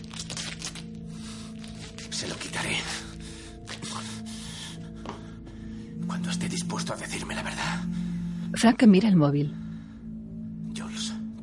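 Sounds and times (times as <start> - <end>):
adhesive tape being pulled and torn off a roll for gagging: 0.0 - 1.0
speech: 2.2 - 3.1, 6.3 - 9.6.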